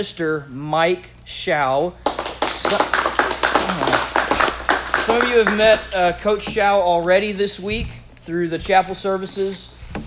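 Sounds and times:
speech: 0.0 - 2.0, 2.6 - 3.1, 5.1 - 9.8
audience applause: 2.0 - 6.0.

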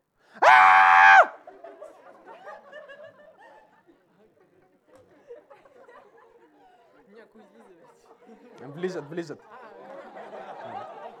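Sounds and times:
man screaming during a church sermon: 0.4 - 1.4
laughter: 1.1 - 7.0, 8.2 - 11.1
speech: 8.6 - 9.6.

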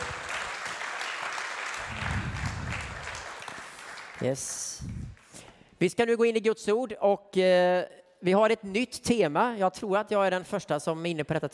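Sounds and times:
audience applause: 0.0 - 4.8
speech: 4.2 - 5.0, 5.8 - 11.5.

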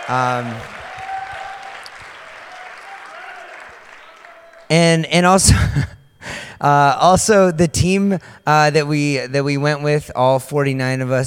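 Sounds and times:
crowd applauding: 0.0 - 4.7
speech: 0.1 - 0.8, 4.7 - 6.0, 6.6 - 11.2.

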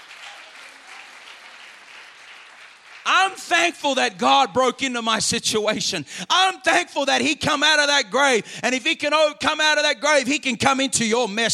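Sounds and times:
audience clapping hands: 0.0 - 4.6
speech: 3.3 - 11.5.

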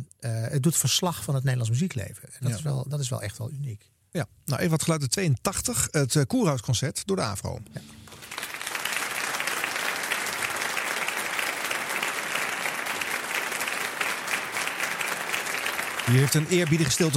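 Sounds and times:
speech: 0.2 - 8.0, 16.1 - 17.1
concert audience applause: 7.8 - 17.1.

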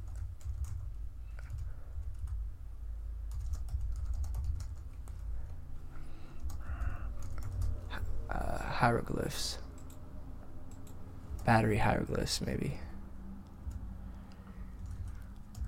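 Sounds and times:
fingers typing on a computer keyboard: 0.0 - 2.4, 3.3 - 5.6, 6.4 - 8.0, 9.7 - 10.0, 10.7 - 11.6, 13.6 - 13.9, 14.7 - 15.6
low steady rumble: 0.0 - 15.6
speech: 8.8 - 9.6, 11.5 - 12.9.

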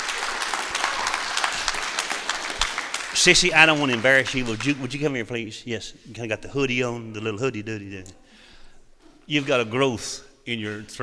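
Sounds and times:
audience hand clapping: 0.0 - 5.3
speech: 3.2 - 8.2, 9.3 - 11.0.

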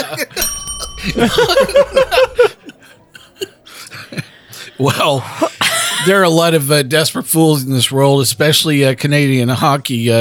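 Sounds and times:
people laughing: 0.0 - 6.3
speech: 0.1 - 0.4, 1.0 - 2.5, 4.8 - 10.1
game-show buzzer bell ringing: 0.4 - 2.7.

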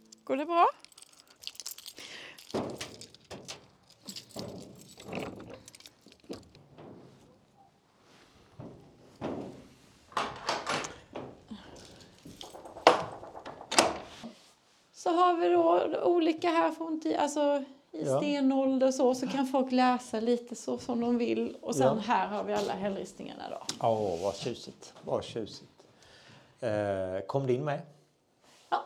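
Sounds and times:
door being unlocked and opened: 0.0 - 7.8, 8.5 - 14.2
speech: 0.3 - 0.8, 15.1 - 25.7, 26.6 - 28.0.

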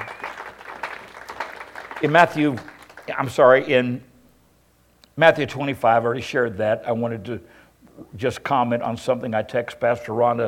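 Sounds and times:
crowd applause: 0.0 - 3.2
speech: 2.0 - 4.1, 5.2 - 10.4.

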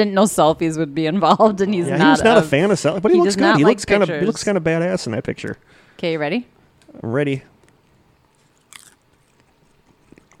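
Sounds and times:
speech: 0.0 - 7.5
buttery dill-flavored snack crunching: 7.6 - 10.3
soft chewing of a buttery dill-flavored snack: 7.6 - 10.3.

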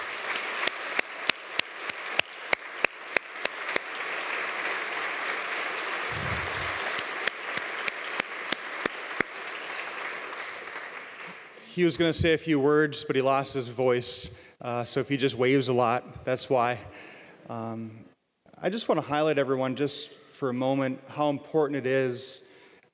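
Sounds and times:
sharp individual claps: 0.0 - 11.7
audience applauding: 0.0 - 11.8
speech: 11.8 - 22.5.

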